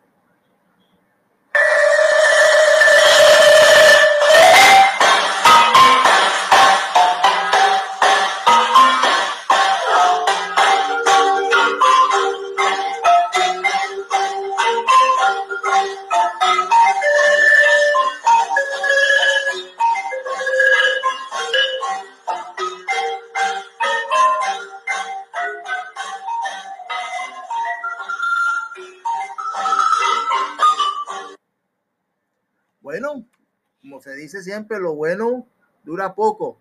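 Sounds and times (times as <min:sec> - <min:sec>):
marimba music: 0:01.6 - 0:31.4
speech: 0:34.4 - 0:35.2, 0:35.9 - 0:36.5.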